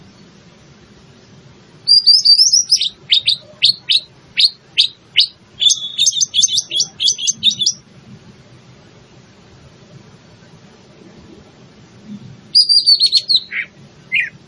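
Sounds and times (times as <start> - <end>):
leafbird cucak ijo singing rapid high chatter and twisting whistled notes: 1.8 - 7.9, 12.5 - 14.4.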